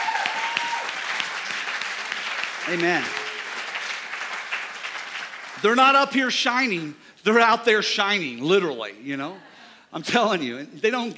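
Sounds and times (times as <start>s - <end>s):
audience applause: 0.0s - 6.1s
speech: 2.7s - 3.2s, 5.6s - 11.1s.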